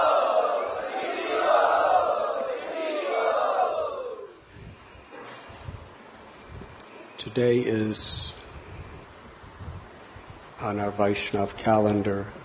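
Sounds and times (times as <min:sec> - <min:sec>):
crowd loudly chanting a mantra: 0:00.0 - 0:04.4
speech: 0:07.3 - 0:08.4, 0:10.6 - 0:12.4.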